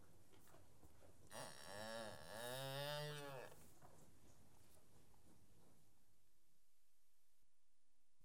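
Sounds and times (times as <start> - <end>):
cattle calf mooing: 1.3 - 3.6.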